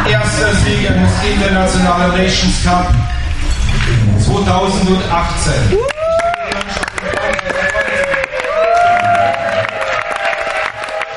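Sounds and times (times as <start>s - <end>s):
speech: 0.8s - 6.0s
crowd roar: 5.6s - 11.1s.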